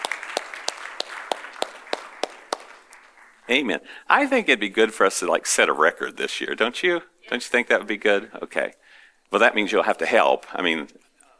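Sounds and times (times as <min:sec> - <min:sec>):
audience applause: 0:00.0 - 0:03.6
speech: 0:03.5 - 0:11.1.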